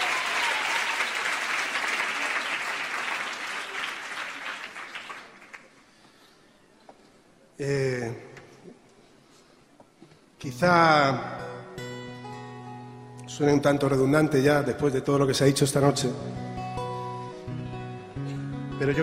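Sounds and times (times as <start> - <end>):
audience clapping at a live concert: 0.0 - 6.2
speech: 7.6 - 8.3, 10.5 - 11.3, 13.4 - 16.4, 18.8 - 19.0.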